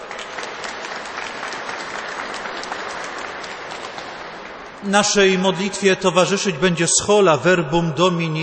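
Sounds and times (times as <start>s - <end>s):
audience applause: 0.0s - 4.8s
speech: 4.8s - 8.4s.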